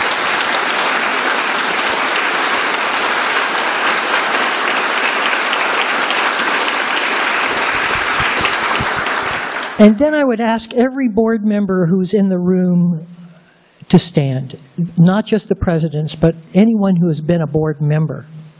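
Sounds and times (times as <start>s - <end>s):
audience applause: 0.0s - 10.0s
speech: 9.8s - 13.2s, 13.9s - 18.4s.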